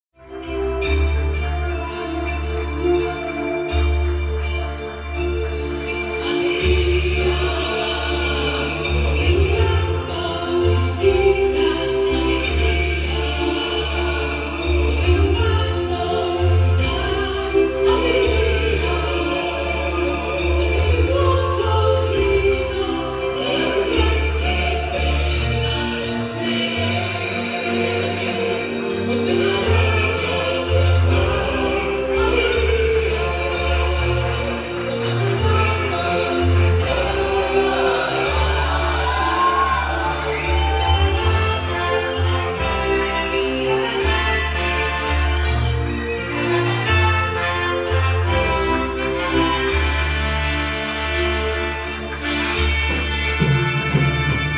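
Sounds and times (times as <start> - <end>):
orchestra: 0.2 - 54.5
choir: 4.4 - 54.5.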